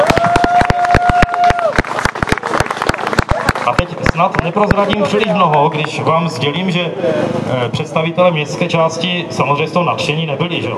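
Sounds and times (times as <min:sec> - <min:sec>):
audience applause: 0:00.0 - 0:06.0
speech: 0:03.7 - 0:10.7.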